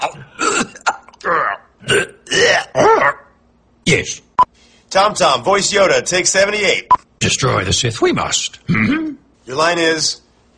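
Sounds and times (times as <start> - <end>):
man clearing throat: 0.0 - 3.2, 8.7 - 9.2
speech: 3.9 - 4.3, 4.9 - 10.2.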